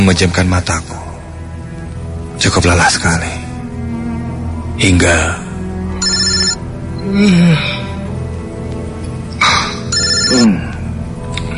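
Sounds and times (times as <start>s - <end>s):
low steady background: 0.0s - 11.5s
speech: 0.1s - 1.0s, 2.4s - 3.4s, 4.8s - 5.4s, 7.1s - 7.8s, 10.3s - 10.7s
mobile phone ringing with an incoming call: 6.0s - 6.7s, 9.8s - 10.6s.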